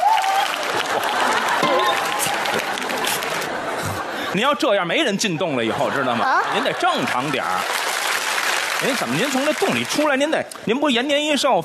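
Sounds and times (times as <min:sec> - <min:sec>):
audience applause: 0:00.0 - 0:04.1, 0:06.3 - 0:10.4
laughter: 0:00.7 - 0:07.8
speech: 0:04.3 - 0:07.8, 0:08.8 - 0:11.6.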